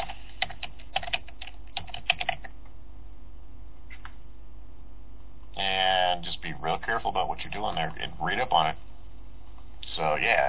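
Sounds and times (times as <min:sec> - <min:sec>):
typing on a computer keyboard: 0:00.0 - 0:02.6
faint steady hum: 0:00.0 - 0:10.4
speech: 0:07.0 - 0:08.9, 0:10.0 - 0:10.4.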